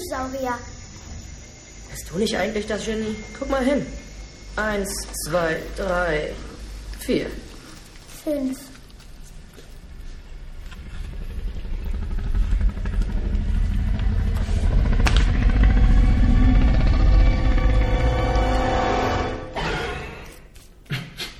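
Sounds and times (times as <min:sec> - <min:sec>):
speech: 0:00.1 - 0:01.1, 0:01.9 - 0:07.5, 0:08.2 - 0:08.7
dinosaur roar from a film clip: 0:10.4 - 0:20.4.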